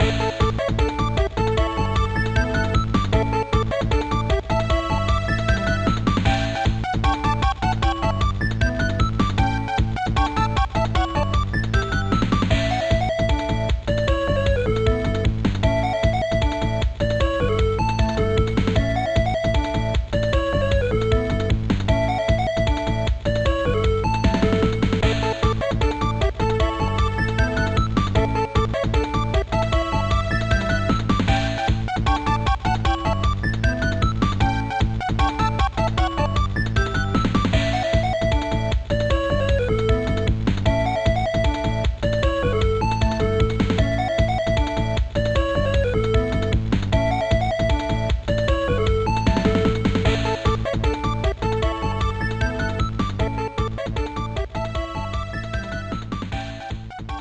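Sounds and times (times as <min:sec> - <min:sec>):
background music: 0:00.0 - 0:57.1.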